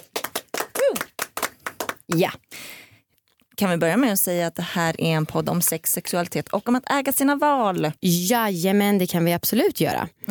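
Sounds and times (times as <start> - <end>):
hands clapping: 0.0 - 2.4
speech: 2.1 - 2.8, 3.6 - 10.2.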